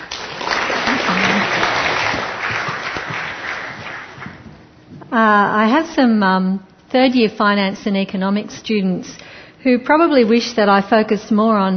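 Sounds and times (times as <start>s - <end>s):
audience applause welcoming a speaker at a talk: 0.0s - 4.6s
speech: 5.2s - 11.7s.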